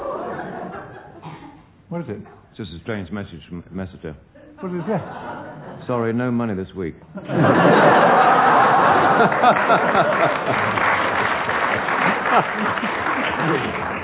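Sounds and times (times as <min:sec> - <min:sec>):
laughter: 0:00.0 - 0:01.2, 0:04.6 - 0:06.0, 0:07.2 - 0:14.0
speech: 0:01.9 - 0:10.9, 0:12.4 - 0:13.9
studio audience applause: 0:07.9 - 0:14.0.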